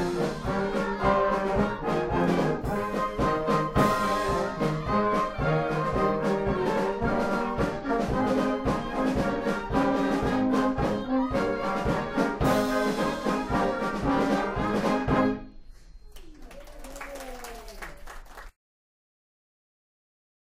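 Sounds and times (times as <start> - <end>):
German polka music: 0.0 - 15.6.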